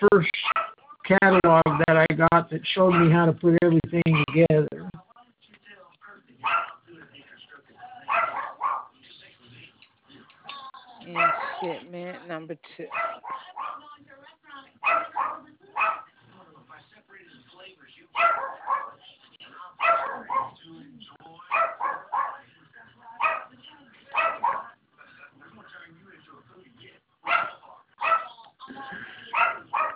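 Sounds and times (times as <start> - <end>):
small rescued pet dog barking, yapping and whimpering: 0.4 - 0.8, 6.4 - 6.8, 8.1 - 8.9, 11.2 - 11.8, 12.9 - 13.8, 14.8 - 16.1, 18.2 - 19.0, 19.8 - 20.6, 21.5 - 22.4, 24.1 - 24.7, 27.3 - 28.3, 29.4 - 29.9
speech: 1.1 - 5.0, 12.4 - 14.0.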